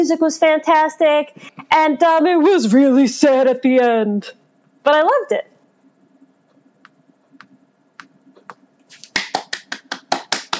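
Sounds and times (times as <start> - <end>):
speech: 0.0 - 5.5
golf clap: 8.9 - 10.5.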